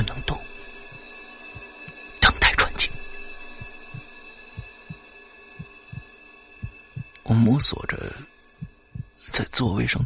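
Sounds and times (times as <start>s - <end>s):
slow heartbeat: 0.9s - 2.1s, 3.6s - 7.2s, 8.6s - 9.2s
speech: 7.4s - 8.3s, 9.4s - 10.0s.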